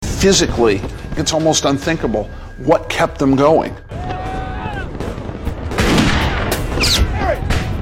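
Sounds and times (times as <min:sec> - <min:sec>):
speech: 0:00.2 - 0:03.9
gunfire in a crossfire: 0:04.0 - 0:07.8.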